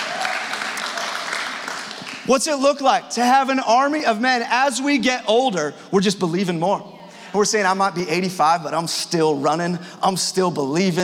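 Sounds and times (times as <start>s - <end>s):
audience clapping: 0.0s - 2.5s
speech: 2.3s - 11.0s.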